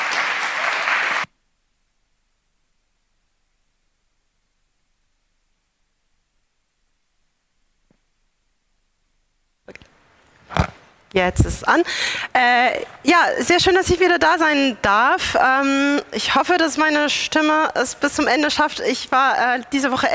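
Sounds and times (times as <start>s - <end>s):
audience applause: 0.0s - 1.3s
speech: 11.1s - 20.1s.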